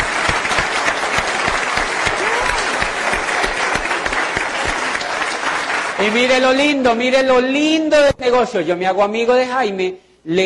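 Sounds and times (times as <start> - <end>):
audience applause: 0.0 - 6.6
speech: 6.0 - 10.4.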